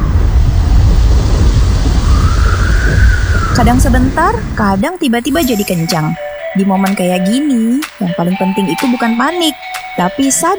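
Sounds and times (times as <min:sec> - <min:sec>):
wind: 0:00.0 - 0:06.5
rain falling: 0:00.0 - 0:10.5
speech: 0:03.6 - 0:10.5.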